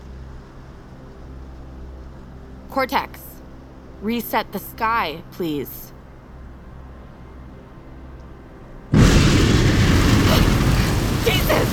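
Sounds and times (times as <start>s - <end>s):
speech: 2.7s - 3.3s, 4.0s - 5.9s
thunder clap from lightning storm: 8.9s - 11.7s.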